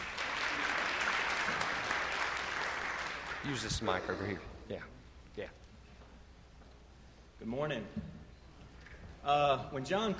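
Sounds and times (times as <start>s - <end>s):
church congregation applauding a speaker at a morning service: 0.0s - 4.5s
speech: 3.4s - 5.6s, 7.4s - 8.2s, 9.2s - 10.1s.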